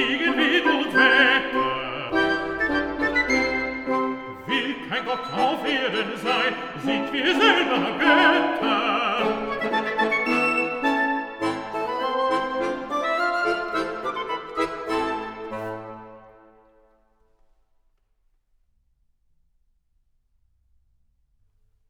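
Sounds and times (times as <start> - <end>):
person singing a song cycle: 0.0 - 12.9
piano: 0.0 - 16.9.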